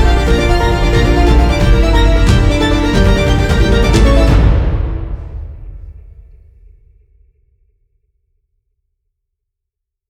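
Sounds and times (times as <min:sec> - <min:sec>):
string quartet playing: 0:00.0 - 0:05.6
epic cinematic trailer music: 0:00.0 - 0:06.4.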